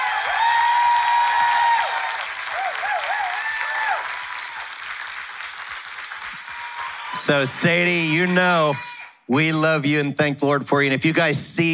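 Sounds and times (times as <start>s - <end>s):
rowdy applause from audience: 0.0s - 8.0s
speech: 7.2s - 11.7s.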